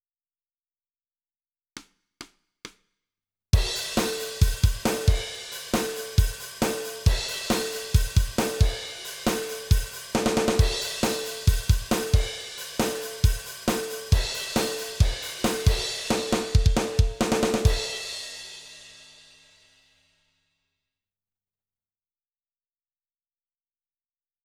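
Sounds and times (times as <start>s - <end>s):
drums: 3.6s - 19.9s.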